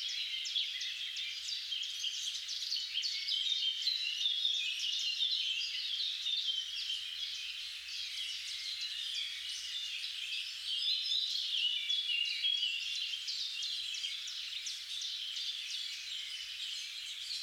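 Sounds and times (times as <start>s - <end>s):
birds in a dense chorus of overlapping high chirps and twitters: 0.0s - 17.4s.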